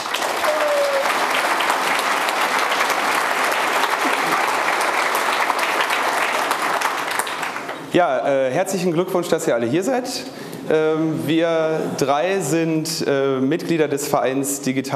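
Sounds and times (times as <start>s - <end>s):
audience applause: 0.0s - 7.9s
speech: 7.9s - 14.9s.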